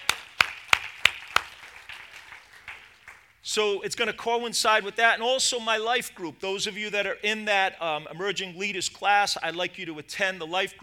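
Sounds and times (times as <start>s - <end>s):
audience clapping: 0.0s - 3.4s
speech: 3.5s - 10.8s.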